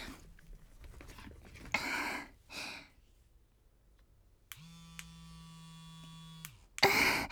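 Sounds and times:
electric vibrator buzzing: 4.5s - 7.3s.

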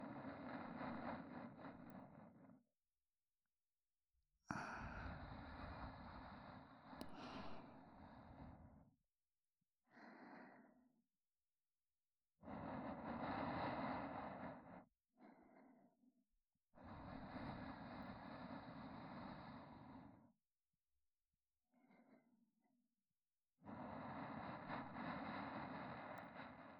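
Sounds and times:
looping sleep companion audio track with reversed position: 0.0s - 2.8s, 4.4s - 9.0s, 9.8s - 11.1s, 12.3s - 16.2s, 16.8s - 20.5s, 21.6s - 22.8s, 23.6s - 26.7s.

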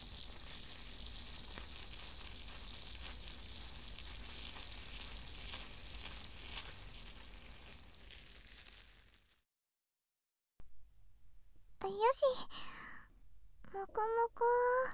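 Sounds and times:
fizzy carbonated shampoo foam being whipped: 0.0s - 9.0s
speech: 11.9s - 12.7s, 13.7s - 14.9s.

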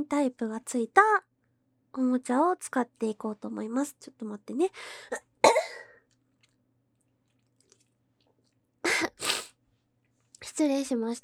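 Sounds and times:
speech: 0.0s - 1.3s, 2.0s - 5.7s, 10.6s - 11.2s
person coughing: 5.4s - 6.0s, 8.9s - 9.5s
person sneezing from allergy: 8.9s - 9.5s.

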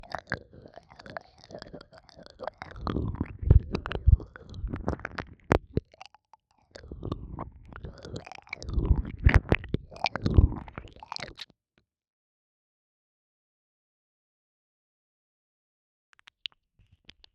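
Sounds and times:
cat-girl ear licking sounds: 0.0s - 11.4s.

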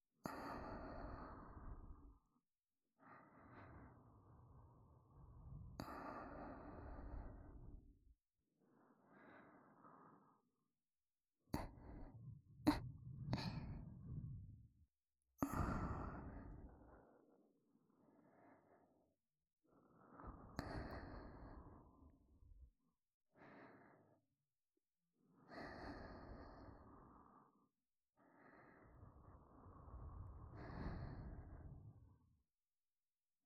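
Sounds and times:
breathing in both ears: 0.2s - 2.3s, 3.0s - 8.0s, 8.6s - 10.6s, 11.5s - 14.7s, 15.4s - 19.1s, 19.8s - 22.3s, 23.4s - 24.3s, 25.4s - 32.2s.

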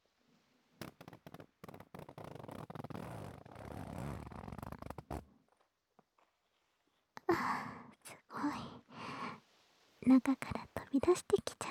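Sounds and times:
zipper pulled down: 0.8s - 5.3s
speech: 10.1s - 11.5s.

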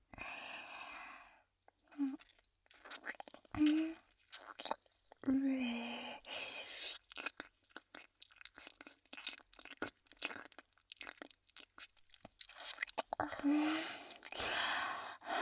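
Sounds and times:
ear licking sounds: 1.8s - 14.8s
person breathing: 13.4s - 15.3s.

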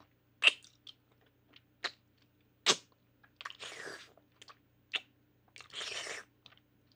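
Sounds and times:
ASMR oral sex mouth sounds: 0.4s - 1.0s, 2.7s - 6.3s.

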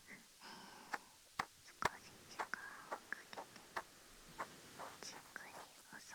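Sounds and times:
ear cleaning ASMR: 0.9s - 5.8s
sea waves: 1.8s - 5.7s.

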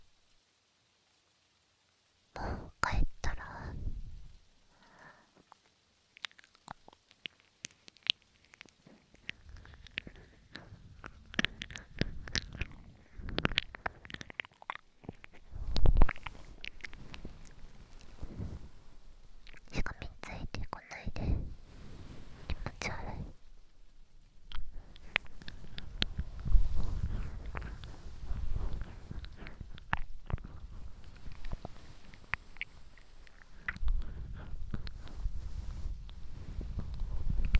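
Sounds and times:
ear licking: 2.4s - 37.5s.

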